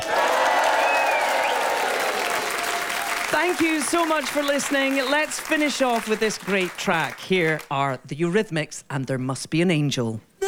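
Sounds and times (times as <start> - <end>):
studio audience cheering: 0.0 - 7.6
speech: 3.4 - 10.4.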